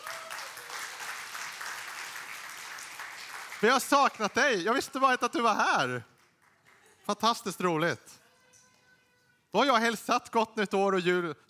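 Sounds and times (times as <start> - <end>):
audience applause: 0.0 - 4.6
speech: 3.6 - 6.1, 7.1 - 8.2, 9.5 - 11.4.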